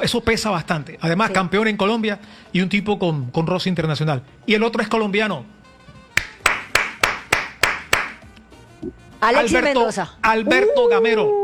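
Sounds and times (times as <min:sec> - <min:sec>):
speech: 0:00.0 - 0:05.6, 0:08.8 - 0:11.4
one person clapping hands: 0:06.2 - 0:08.3.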